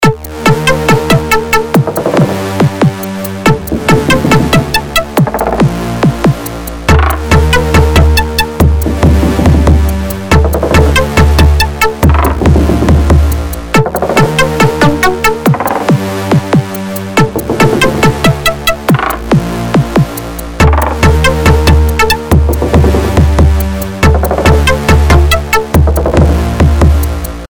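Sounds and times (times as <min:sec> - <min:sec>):
background music: 0:00.0 - 0:27.4.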